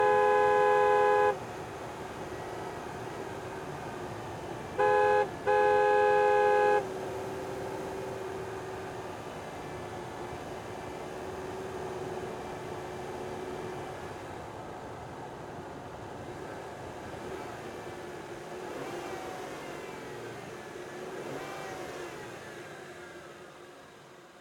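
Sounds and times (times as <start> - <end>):
2005 Aston Martin DB9 horn: 0.0 - 1.4, 4.8 - 7.2
2005 Aston Martin DB9 engine onboard: 0.0 - 15.2, 15.9 - 24.3.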